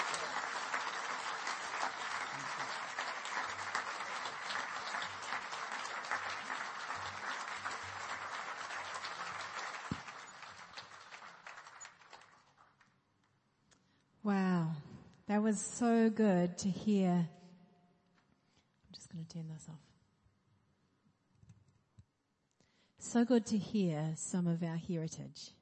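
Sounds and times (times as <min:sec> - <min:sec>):
audience applauding: 0:00.0 - 0:12.9
speech: 0:15.3 - 0:17.4, 0:19.4 - 0:19.9, 0:23.1 - 0:25.6.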